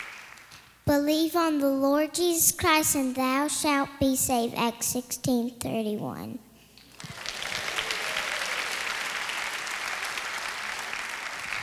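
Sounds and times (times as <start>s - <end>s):
audience applause: 0.0s - 0.5s, 6.9s - 11.6s
speech: 0.9s - 6.5s.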